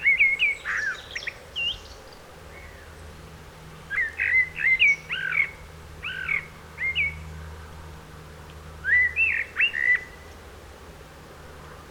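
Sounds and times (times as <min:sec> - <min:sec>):
Turdus merula common blackbird singing mellow whistled notes: 0:00.0 - 0:02.0, 0:03.9 - 0:07.2, 0:08.8 - 0:10.2.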